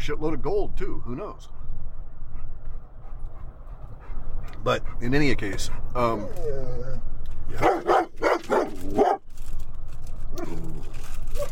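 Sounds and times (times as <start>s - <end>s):
speech: 0.0s - 1.7s, 4.6s - 9.2s
dog barking at mail carriers: 7.6s - 9.2s.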